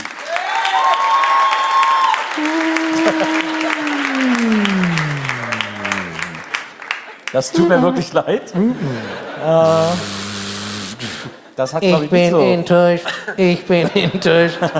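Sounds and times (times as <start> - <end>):
studio audience at a quiz show applauding: 0.0 - 8.1
laughter: 2.3 - 14.7
sustained descending tones: 2.4 - 6.6
speech: 7.4 - 10.2, 11.6 - 14.7.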